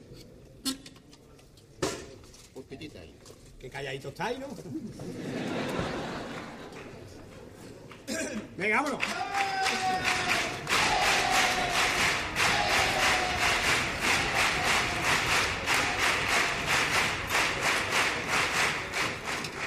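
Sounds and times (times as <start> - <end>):
speech: 2.7 - 6.1, 8.6 - 10.1
laughter: 4.7 - 7.6
spontaneous applause: 6.2 - 19.6.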